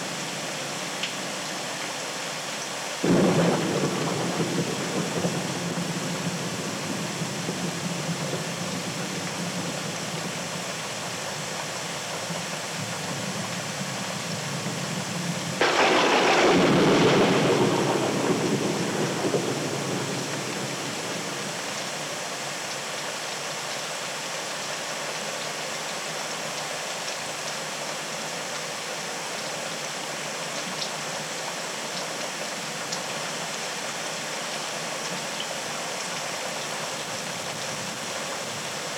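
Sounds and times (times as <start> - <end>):
rainstorm: 0.0 - 38.9.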